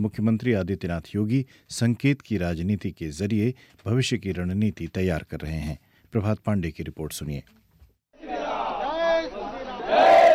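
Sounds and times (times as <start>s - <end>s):
speech: 0.0s - 7.6s
crowd chanting slogans: 8.2s - 10.3s.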